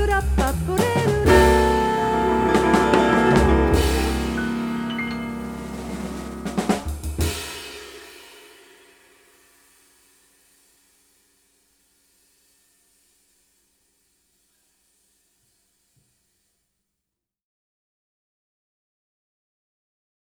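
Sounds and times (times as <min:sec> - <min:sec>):
blues saxophone: 0:00.0 - 0:07.4.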